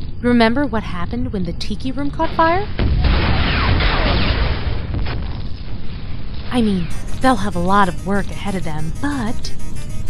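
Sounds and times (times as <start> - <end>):
speech: 0.2 - 3.4, 6.5 - 9.7
building blowing up in a loud dense rumbling roar: 2.7 - 6.9.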